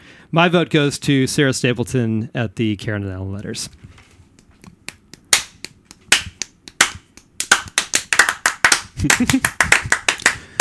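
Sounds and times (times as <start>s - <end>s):
speech: 0.3s - 3.9s, 9.0s - 9.7s
hand clapping: 4.3s - 10.5s.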